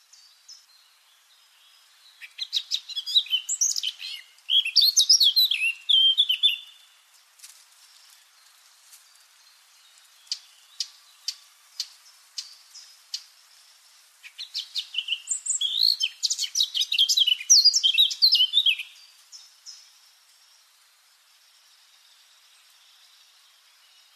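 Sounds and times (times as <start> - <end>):
Eurasian blackcap Sylvia atricapilla singing: 2.2 - 6.8, 14.3 - 19.0.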